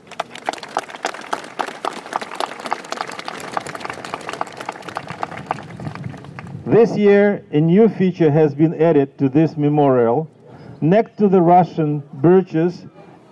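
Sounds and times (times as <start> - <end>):
audience applause: 0.0 - 6.6
speech: 6.7 - 13.3.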